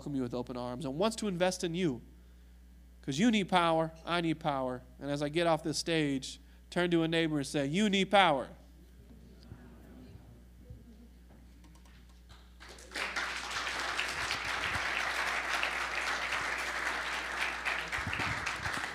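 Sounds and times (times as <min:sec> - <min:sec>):
speech: 0:00.0 - 0:02.1, 0:03.1 - 0:08.6
audience applause: 0:12.6 - 0:18.9.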